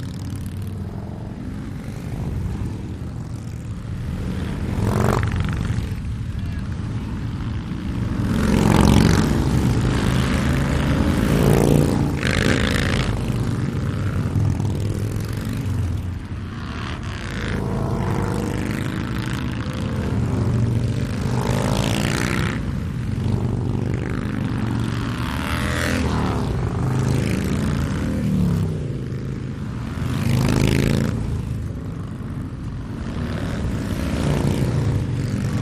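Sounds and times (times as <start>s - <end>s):
multiple Harley Davidson motorcycles: 0.0s - 35.6s.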